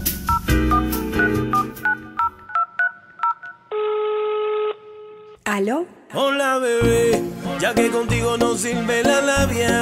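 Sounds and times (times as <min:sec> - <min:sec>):
telephone keypad dialing tones: 0:00.3 - 0:04.0
loud sustained telephone tone: 0:00.7 - 0:05.3
speech: 0:05.5 - 0:09.7.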